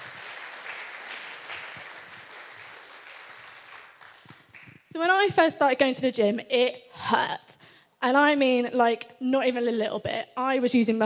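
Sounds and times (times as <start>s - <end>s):
audience clapping: 0.0s - 4.9s
speech: 4.9s - 11.0s.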